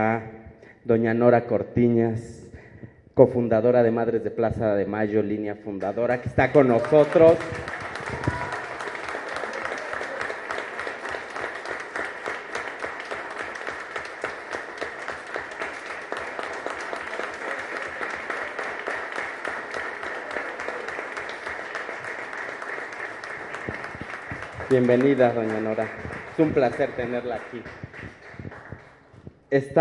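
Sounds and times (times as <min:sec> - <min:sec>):
speech: 0:00.0 - 0:02.4, 0:03.2 - 0:07.8, 0:24.8 - 0:28.2, 0:29.5 - 0:29.7
audience applause: 0:06.4 - 0:29.2.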